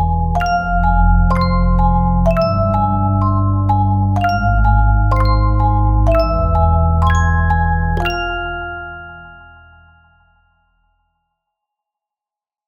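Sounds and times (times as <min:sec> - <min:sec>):
horror music box melody: 0:00.0 - 0:10.1.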